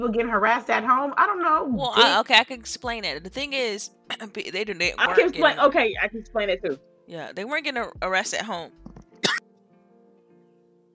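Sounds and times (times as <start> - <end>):
speech: 0.0 - 8.9
coughing: 9.2 - 9.4.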